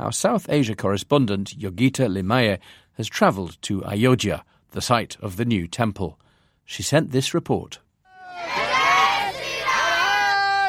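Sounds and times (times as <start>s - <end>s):
speech: 0.0s - 8.6s
young group of Hindus shouting near temple site: 8.1s - 10.6s.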